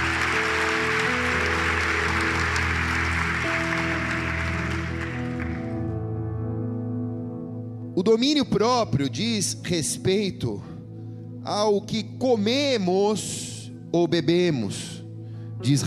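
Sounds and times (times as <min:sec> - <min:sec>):
crowd clapping: 0:00.0 - 0:05.8
sustained keyboard chords: 0:00.0 - 0:15.8
speech: 0:08.0 - 0:10.7, 0:11.4 - 0:15.0, 0:15.6 - 0:15.8.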